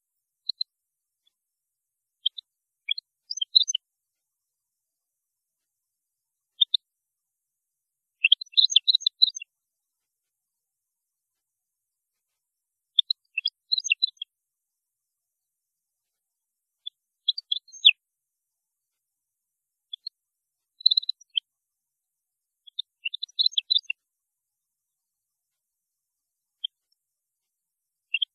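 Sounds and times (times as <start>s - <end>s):
European goldfinch singing: 2.2s - 3.8s, 8.2s - 9.5s, 13.0s - 14.3s, 17.3s - 17.9s, 20.8s - 21.4s, 22.7s - 23.9s, 28.1s - 28.3s.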